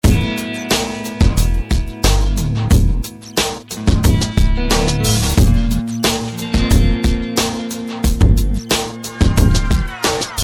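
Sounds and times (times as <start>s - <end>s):
music loop: 0.0s - 10.4s.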